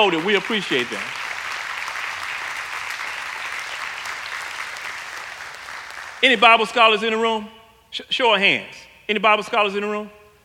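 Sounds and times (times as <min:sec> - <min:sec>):
speech: 0:00.0 - 0:01.2, 0:06.2 - 0:10.2
audience applause: 0:00.0 - 0:06.2.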